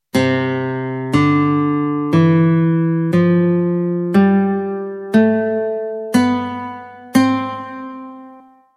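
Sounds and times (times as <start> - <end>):
C major scale: 0.2 - 8.7.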